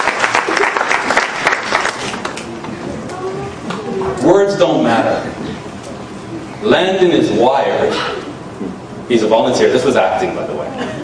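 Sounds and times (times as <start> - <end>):
audience applause: 0.0 - 2.6
speech: 4.3 - 5.4, 6.6 - 8.1, 9.1 - 11.0.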